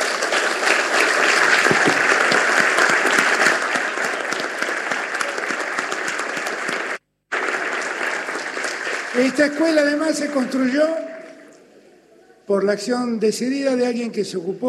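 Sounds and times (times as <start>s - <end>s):
audience applause: 0.0s - 10.9s
speech: 9.2s - 11.1s, 12.5s - 14.6s.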